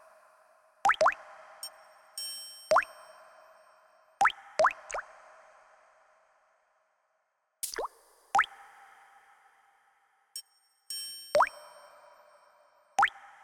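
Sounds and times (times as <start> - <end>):
water drops: 0.9 - 1.2, 4.2 - 5.0, 7.6 - 8.5, 11.4 - 11.6.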